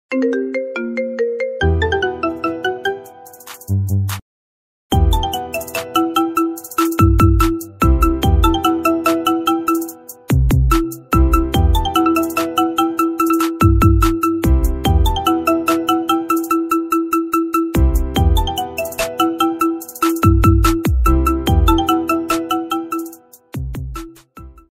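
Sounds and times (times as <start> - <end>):
marimba remix ringtone: 0.1 - 3.4, 4.9 - 23.4.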